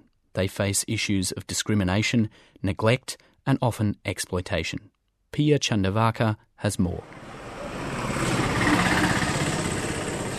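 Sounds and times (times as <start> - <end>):
speech: 0.4 - 7.2
road traffic with motorbikes on an arterial road in Coimbatore: 7.0 - 10.3.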